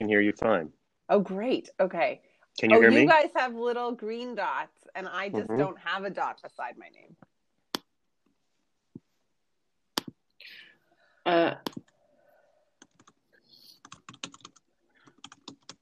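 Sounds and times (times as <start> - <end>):
speech: 0.0 - 7.3, 11.2 - 11.8
faint noise: 0.0 - 15.8
typing on a computer keyboard: 12.8 - 13.2, 13.8 - 15.8.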